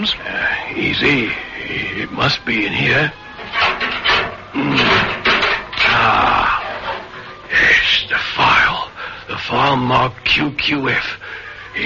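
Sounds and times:
speech: 0.0 - 4.0, 7.5 - 8.8, 9.5 - 11.2
locked metal filing cabinet being forced open: 2.5 - 7.5.

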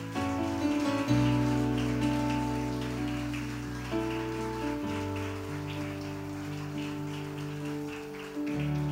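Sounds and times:
audience clapping hands as offering: 0.0 - 8.9
sustained keyboard chords: 0.0 - 8.9.

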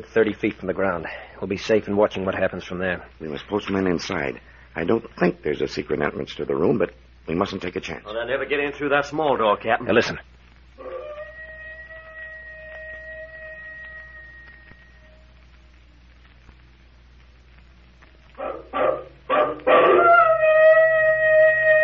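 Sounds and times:
speech: 0.0 - 10.9
wolf yelping: 10.8 - 11.7, 18.4 - 21.8
wolf howling: 10.8 - 15.3, 18.4 - 21.8.

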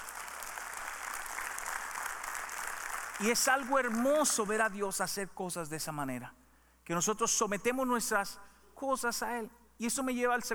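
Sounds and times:
audience applause: 0.0 - 4.2
speech: 3.2 - 10.5.

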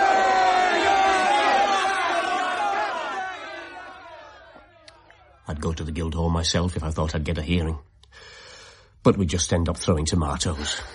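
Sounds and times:
crowd cheering: 0.0 - 5.9
speech: 5.5 - 8.4, 9.0 - 10.9.

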